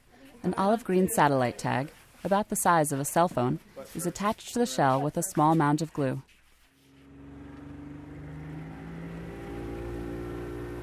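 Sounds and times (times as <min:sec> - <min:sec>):
speech: 0:00.4 - 0:06.3
motorboat engine droning: 0:06.8 - 0:10.8.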